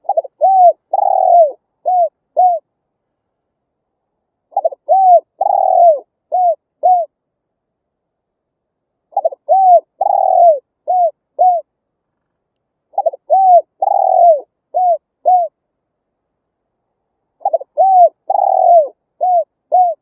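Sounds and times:
spotted dove calling: 0.0 - 2.7, 4.5 - 7.2, 9.1 - 11.7, 12.9 - 15.6, 17.4 - 20.0.

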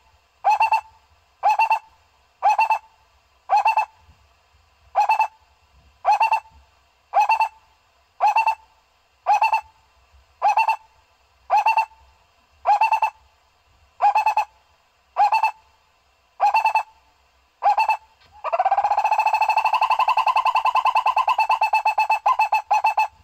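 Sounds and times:
owl hooting: 0.0 - 4.0, 4.9 - 5.4, 6.0 - 9.8, 10.4 - 13.2, 14.0 - 14.6, 15.2 - 15.7, 16.4 - 17.0, 17.6 - 23.2.

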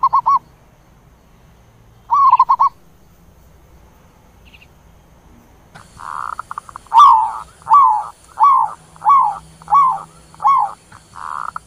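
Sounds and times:
zebra dove cooing: 0.0 - 0.4, 2.1 - 2.8, 5.8 - 11.6.

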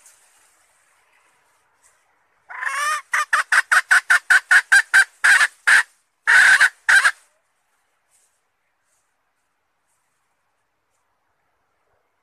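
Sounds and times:
red junglefowl hen cackling: 2.5 - 7.2.

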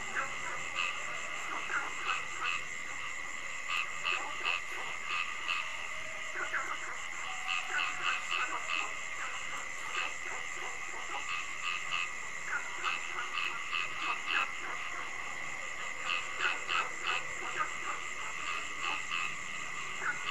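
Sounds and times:
many frogs croaking: 0.0 - 20.2.

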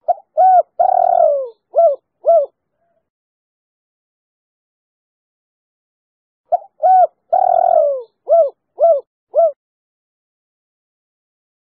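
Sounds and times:
spotted dove cooing: 0.0 - 2.6, 6.5 - 9.6.

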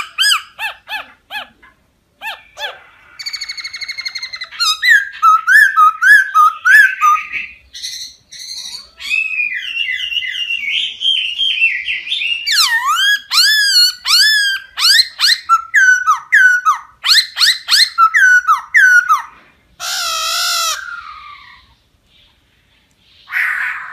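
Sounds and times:
laughingthrush song: 3.2 - 19.3.

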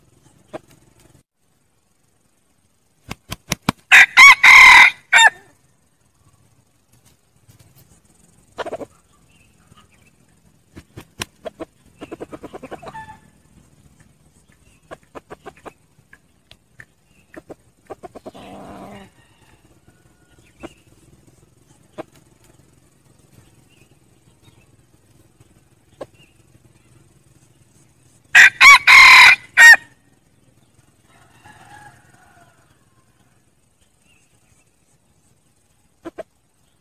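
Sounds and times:
red junglefowl crowing: 3.9 - 5.5, 12.6 - 13.4, 18.4 - 20.7, 28.3 - 30.0, 31.0 - 33.1
red junglefowl clucking: 8.6 - 10.0, 11.2 - 13.4, 14.8 - 16.3, 17.2 - 19.2, 36.0 - 36.3.

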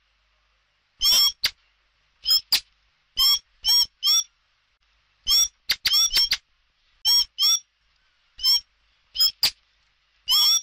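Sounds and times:
Common blackbird giving sharp squeaky calls: 1.0 - 1.5, 2.2 - 2.6, 3.2 - 4.3, 5.3 - 6.4, 7.0 - 7.7, 8.4 - 9.6, 10.3 - 10.6.

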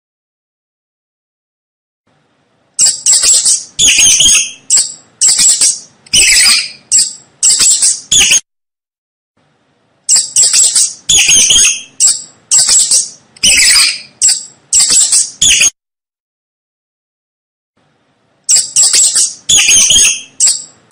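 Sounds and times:
mouse squeaking: 2.8 - 8.4, 10.1 - 15.8, 18.5 - 20.9.

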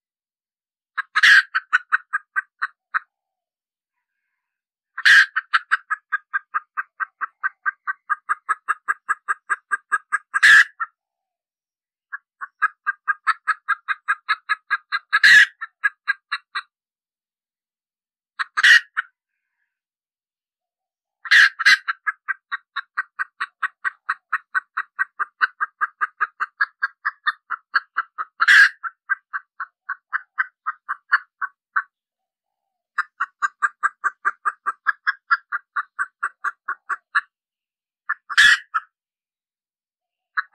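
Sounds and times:
red junglefowl hen cackling: 1.0 - 3.1, 4.9 - 11.0, 12.1 - 16.7, 18.4 - 19.2, 21.2 - 31.9, 33.0 - 37.3, 38.1 - 38.9, 40.4 - 40.5.

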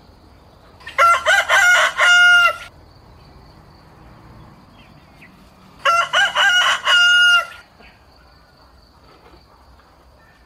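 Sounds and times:
rooster crowing: 0.8 - 2.7, 5.8 - 7.7.

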